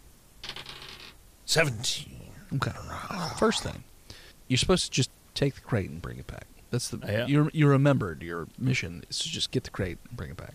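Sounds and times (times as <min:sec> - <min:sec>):
dice rolling on a hard tabletop: 0:00.4 - 0:01.2
speech: 0:01.5 - 0:03.9, 0:04.5 - 0:10.5.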